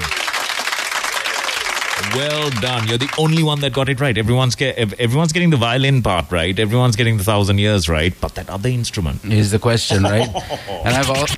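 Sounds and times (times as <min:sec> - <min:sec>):
round of applause: 0:00.0 - 0:03.8
speech: 0:02.1 - 0:11.3
laughter: 0:09.9 - 0:11.3.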